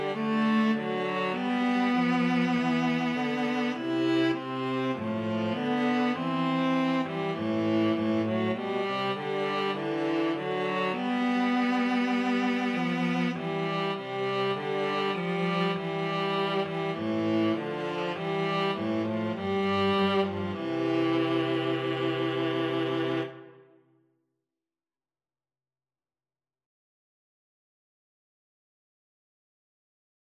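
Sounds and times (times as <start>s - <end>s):
string trio karaoke backing track: 0.0s - 23.7s.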